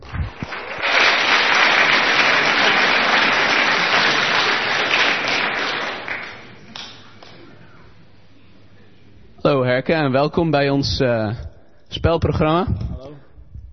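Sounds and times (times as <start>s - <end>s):
warm audience applause: 0.0s - 7.4s
speech: 9.8s - 12.9s.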